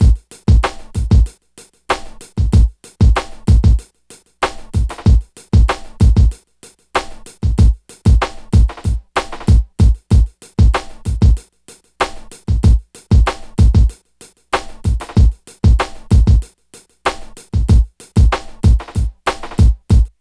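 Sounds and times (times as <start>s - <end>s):
hip hop and R&B music: 0.0s - 6.4s, 7.0s - 14.0s, 14.6s - 16.5s, 17.1s - 20.1s.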